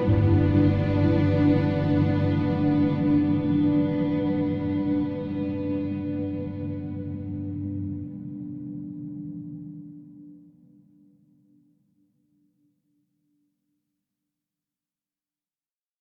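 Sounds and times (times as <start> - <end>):
heartbreak ambient music: 0.0 - 11.4.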